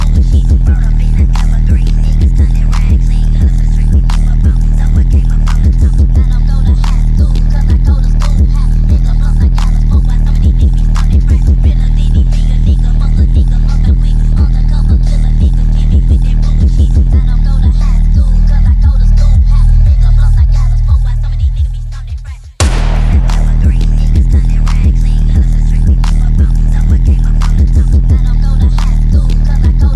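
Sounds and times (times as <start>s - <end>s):
Japanese stutter phonk music: 0.0s - 29.9s.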